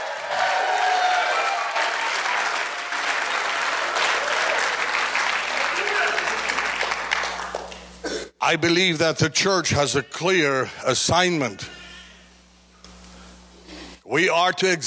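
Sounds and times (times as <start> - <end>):
shouts and cheering voices: 0.0 - 7.0
audience clapping: 0.0 - 8.0
speech: 8.5 - 11.8, 14.1 - 14.8.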